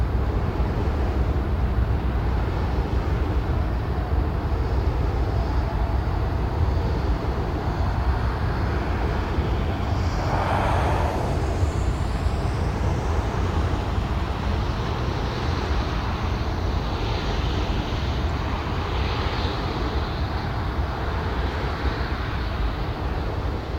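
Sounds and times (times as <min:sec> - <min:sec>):
wind turbine: 0:00.0 - 0:23.7
highway traffic noise: 0:07.2 - 0:16.9.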